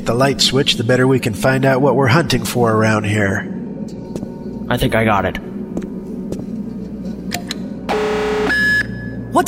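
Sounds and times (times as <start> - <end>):
speech: 0.0 - 3.6, 4.7 - 5.5
alarm going off: 7.9 - 9.2.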